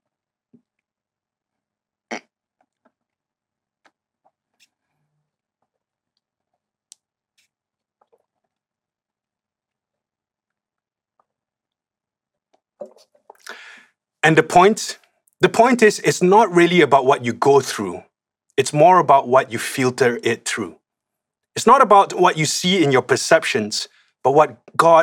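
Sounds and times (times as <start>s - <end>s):
sipping water from a dirty glass: 12.8s - 13.8s
speech: 14.2s - 20.8s, 21.6s - 25.0s.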